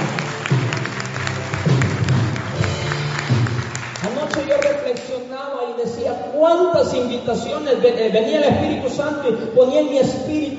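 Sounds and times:
audience clapping loudly: 0.0 - 5.1
speech: 6.4 - 10.5.

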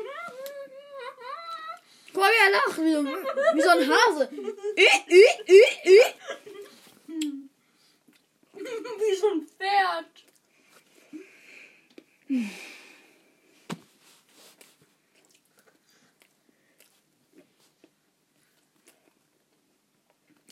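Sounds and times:
speech: 2.2 - 6.4, 9.1 - 10.2, 12.3 - 12.8
people chewing and eating pizza: 6.5 - 8.7, 10.2 - 12.2, 14.3 - 20.5.

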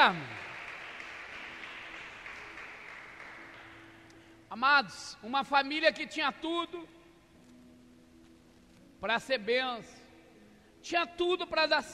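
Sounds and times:
speech: 0.0 - 0.4, 4.5 - 7.0, 9.0 - 10.0, 10.8 - 11.9
audience applause: 0.1 - 4.0.

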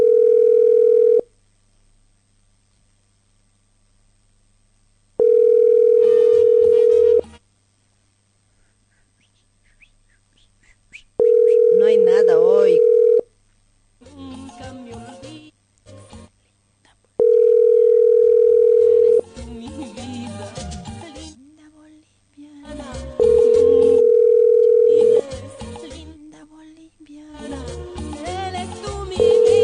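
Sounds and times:
telephone ringback tone of an unanswered call: 0.0 - 1.2, 5.2 - 7.2, 11.2 - 13.2, 17.2 - 19.2, 23.2 - 25.3, 29.2 - 29.6
people talking: 11.5 - 12.9.

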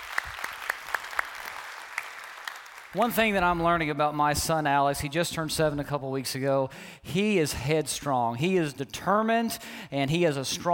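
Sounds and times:
church congregation in North Garnett clapping: 0.0 - 4.0
speech: 2.9 - 10.7.

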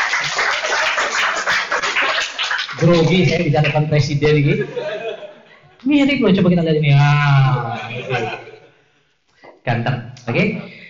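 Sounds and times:
crowd applause: 0.0 - 3.3
speech: 2.8 - 5.0, 5.8 - 8.4, 9.6 - 10.8
laughter: 4.5 - 5.8, 7.6 - 8.8.

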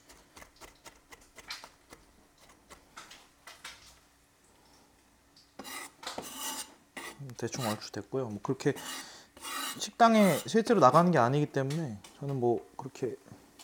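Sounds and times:
garlic minced by hand: 0.0 - 2.9, 5.6 - 7.8, 8.8 - 11.2
speech: 7.4 - 9.0, 9.8 - 13.4.

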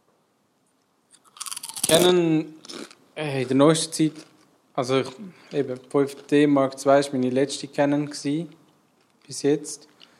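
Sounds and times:
potato chip being bitten and chewed: 1.1 - 3.0, 4.1 - 4.5
speech: 1.9 - 2.6, 3.2 - 8.6, 9.3 - 9.9.

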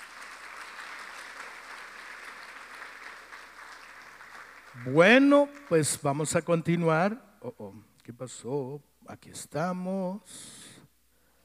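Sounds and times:
applause from a group of people: 0.0 - 6.1
speech: 4.8 - 10.6.

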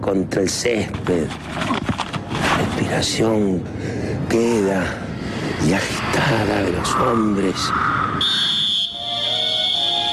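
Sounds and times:
speech: 0.1 - 5.0, 5.6 - 7.9
referee's whistle: 8.2 - 10.1.

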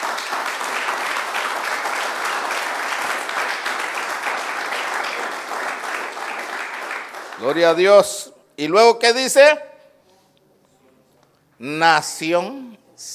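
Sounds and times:
audience clapping: 0.0 - 8.1
speech: 7.4 - 9.7, 11.6 - 13.1.

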